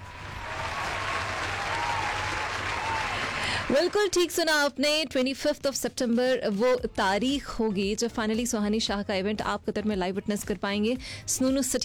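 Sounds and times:
applause: 0.0s - 4.3s
speech: 3.7s - 11.8s.

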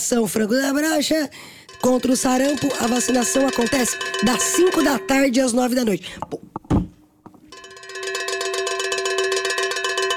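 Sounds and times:
speech: 0.1s - 6.6s
cowbell ringing: 1.6s - 5.9s, 7.5s - 10.1s.

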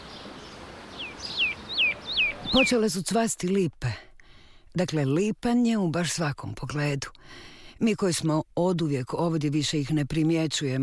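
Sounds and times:
birds chirping in a park: 0.0s - 3.1s
speech: 2.5s - 4.1s, 4.7s - 10.8s.

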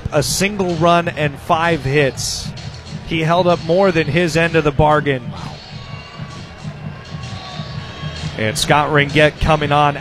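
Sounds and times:
college baseball crowd cheering an ovation for a departing Cougar pitcher: 0.0s - 10.0s
speech: 0.1s - 5.6s, 8.4s - 10.0s
scattered shouts: 5.5s - 8.5s.

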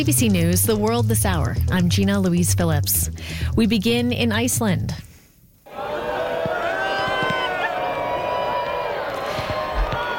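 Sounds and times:
speech: 0.0s - 5.1s
crowd cheering while watching the solar eclipse: 5.7s - 10.1s.

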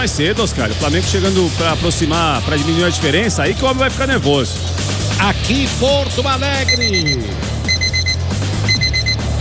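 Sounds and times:
speech: 0.0s - 7.6s
alert chime sound effect of rapid high beeps: 6.6s - 9.3s.

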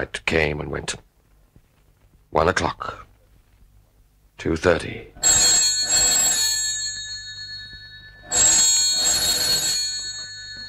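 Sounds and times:
speech: 0.0s - 1.1s, 2.3s - 3.0s, 4.4s - 5.4s
telephone bell ringing: 5.2s - 10.6s.

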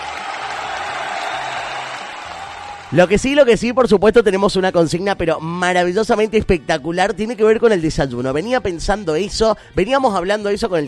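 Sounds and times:
applause: 0.0s - 3.3s
speech: 2.9s - 10.8s.

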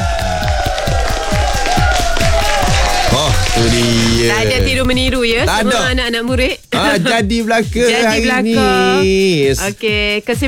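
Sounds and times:
group clapping hands: 0.0s - 5.9s
speech: 3.6s - 10.4s.

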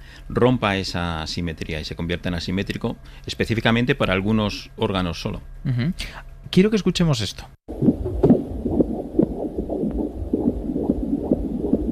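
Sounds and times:
speech: 0.3s - 7.9s
fetal heartbeat on an ultrasound monitor: 7.7s - 11.9s.

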